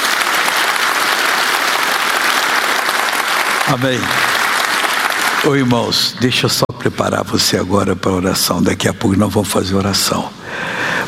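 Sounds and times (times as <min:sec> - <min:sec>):
audience applauding: 0:00.0 - 0:06.6
speech: 0:03.7 - 0:04.3, 0:05.4 - 0:10.8.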